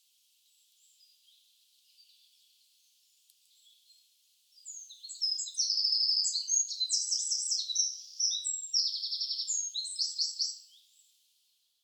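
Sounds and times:
Eurasian wren singing: 4.6s - 10.9s.

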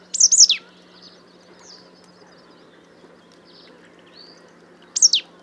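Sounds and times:
marsh tit Poecile palustris calling: 0.1s - 0.7s, 4.9s - 5.3s.

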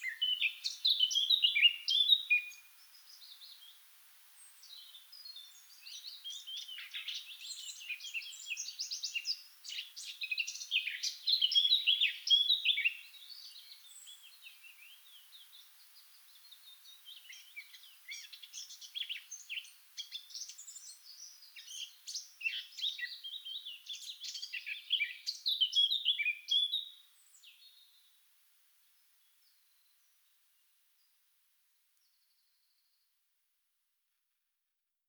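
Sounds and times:
Eurasian blackcap singing: 0.0s - 3.8s, 4.6s - 15.7s, 16.6s - 27.8s.

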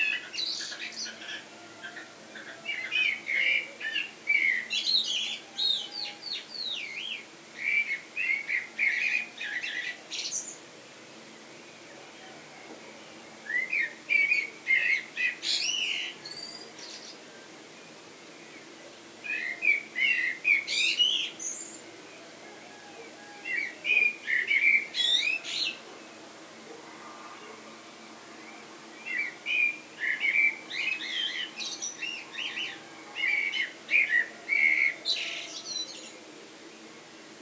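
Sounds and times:
common blackbird song: 2.7s - 10.6s, 13.4s - 17.2s, 19.2s - 21.8s, 23.2s - 25.8s, 28.5s - 36.1s.

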